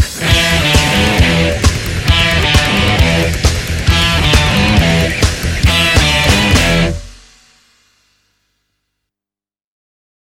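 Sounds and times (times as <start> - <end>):
rockabilly music: 0.0 - 7.3.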